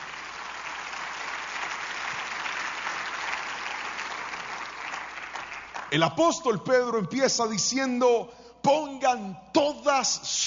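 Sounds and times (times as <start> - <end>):
audience applauding loudly: 0.0 - 6.3
speech: 5.9 - 10.4.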